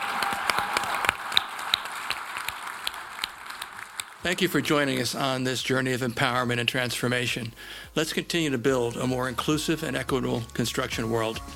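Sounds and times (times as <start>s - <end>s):
audience applause: 0.0s - 5.1s
speech: 4.2s - 11.5s.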